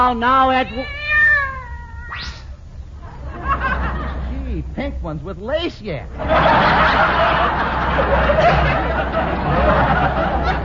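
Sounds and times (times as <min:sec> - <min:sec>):
speech: 0:00.0 - 0:01.1, 0:04.7 - 0:10.4
cat meowing: 0:00.4 - 0:02.5
laughter: 0:03.0 - 0:04.6, 0:06.1 - 0:10.6.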